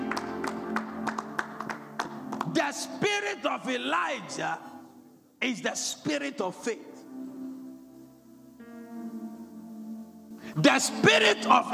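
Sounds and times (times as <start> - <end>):
audience clapping in praise: 0.0 - 2.6
speech: 2.6 - 4.7, 5.4 - 6.9, 10.6 - 11.7.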